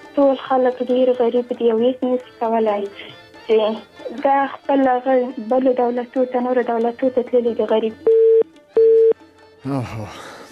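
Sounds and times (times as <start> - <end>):
speech: 0.2 - 8.2, 9.6 - 10.3
telephone call cut off tone after credit ran out: 8.0 - 9.2.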